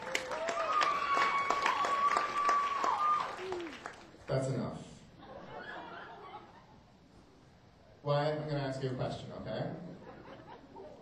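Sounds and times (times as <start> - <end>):
audience applause at Cobb's Comedy Club: 0.0 - 4.2
laughter: 5.2 - 6.9, 9.9 - 11.0
speech: 8.1 - 9.8.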